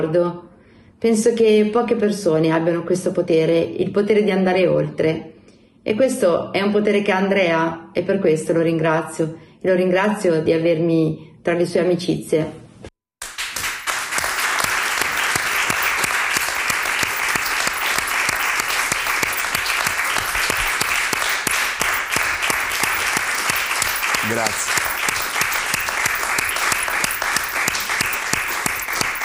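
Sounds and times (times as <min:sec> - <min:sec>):
speech: 0:00.0 - 0:12.6, 0:24.4 - 0:24.7
audience applause: 0:13.2 - 0:29.2.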